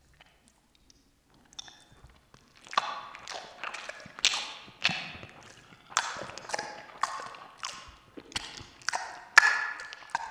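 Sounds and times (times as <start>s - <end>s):
person eating: 2.6s - 10.2s.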